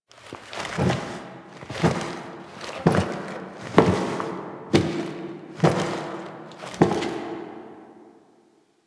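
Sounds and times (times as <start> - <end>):
footsteps: 0.1 - 8.0.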